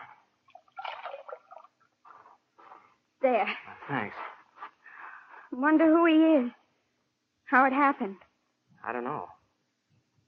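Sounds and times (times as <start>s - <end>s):
water splashing as a bullet wound in a man's chest is washed: 0.0s - 1.8s
speech: 3.2s - 4.3s, 5.5s - 6.6s, 7.5s - 8.2s, 8.8s - 9.4s.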